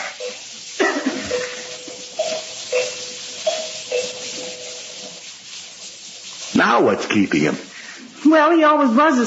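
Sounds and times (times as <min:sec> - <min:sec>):
doorbell ringing: 0:01.2 - 0:04.8
speech: 0:06.6 - 0:07.7, 0:08.3 - 0:09.2.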